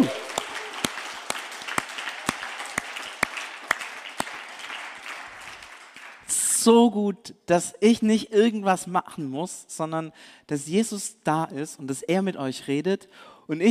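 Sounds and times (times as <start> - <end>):
audience applause: 0.0 - 6.3
speech: 6.6 - 13.6.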